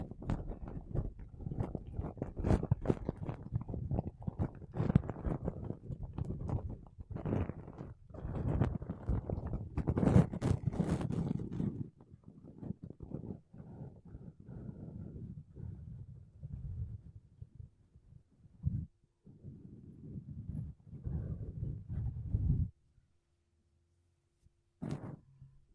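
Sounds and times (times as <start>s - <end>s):
makeup brushes and a sponge rubbing against a microphone: 0.0s - 17.2s, 18.6s - 22.7s, 24.8s - 25.4s.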